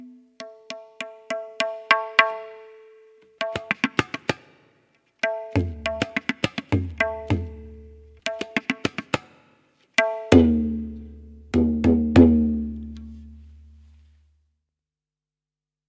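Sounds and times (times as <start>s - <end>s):
tabla solo: 0.1s - 4.6s, 5.2s - 9.4s, 10.0s - 13.9s.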